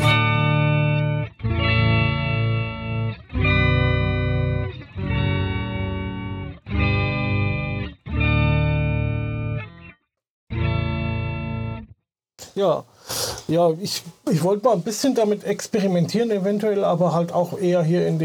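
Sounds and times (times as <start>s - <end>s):
electric guitar through an octave effect with sub-octave tone: 0.0s - 12.0s
speech: 12.6s - 18.2s.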